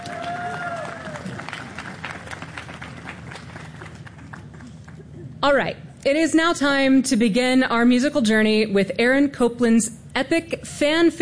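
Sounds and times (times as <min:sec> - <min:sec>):
audience applause for a choir: 0:00.0 - 0:05.2
speech: 0:05.4 - 0:11.2.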